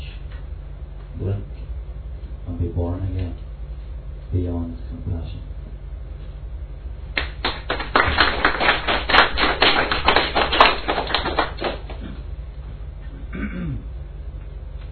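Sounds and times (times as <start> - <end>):
speech: 1.2 - 1.6, 2.6 - 3.5, 4.3 - 5.6
audience clapping between poems: 7.2 - 12.0.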